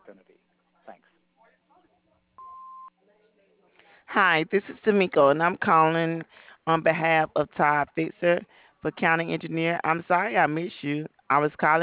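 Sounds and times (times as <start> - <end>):
answering machine beep marking the start of a message: 2.4 - 2.9
speech: 4.2 - 11.8.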